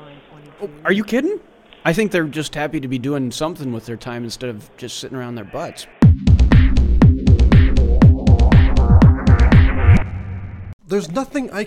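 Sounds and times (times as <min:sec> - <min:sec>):
speech: 0:00.6 - 0:06.3, 0:10.9 - 0:11.6
fast heartbeat sound effect: 0:06.0 - 0:10.5.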